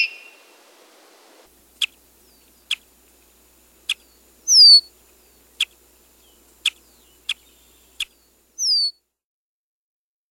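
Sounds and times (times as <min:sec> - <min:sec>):
Red-winged Blackbird: 0:01.6 - 0:08.9.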